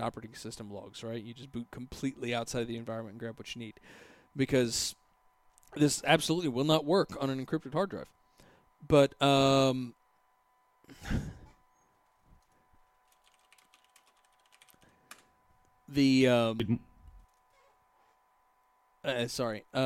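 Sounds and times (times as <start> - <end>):
speech: 0.0 - 5.0, 5.7 - 8.2, 8.8 - 10.0, 10.9 - 11.4, 15.9 - 16.9, 19.0 - 19.8
typing on a computer keyboard in a chat room: 13.0 - 15.2.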